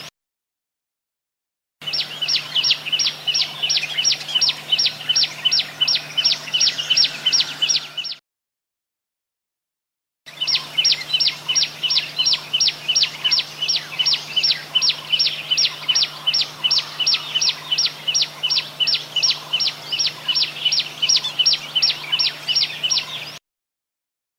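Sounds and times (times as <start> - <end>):
bird song of high arched whistled notes: 1.8 - 8.2, 10.3 - 23.4.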